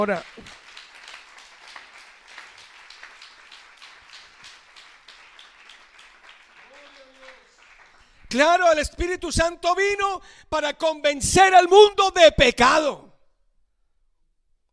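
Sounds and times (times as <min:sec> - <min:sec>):
speech: 0:00.0 - 0:00.6, 0:08.3 - 0:13.1
audience applause: 0:00.0 - 0:08.4.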